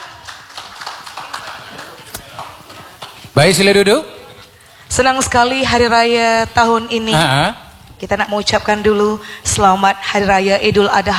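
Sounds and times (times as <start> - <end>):
crowd applauding: 0.0 - 3.8
speech: 3.4 - 4.2, 4.9 - 11.1.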